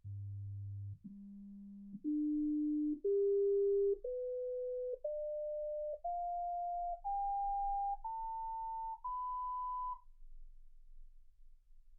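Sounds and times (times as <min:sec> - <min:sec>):
sine tones: 0:00.0 - 0:10.2.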